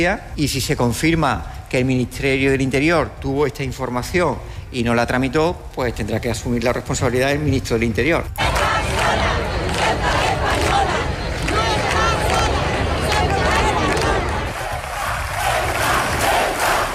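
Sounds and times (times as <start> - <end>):
speech: 0.0 - 9.4
large crowd shouting in support: 8.4 - 16.9.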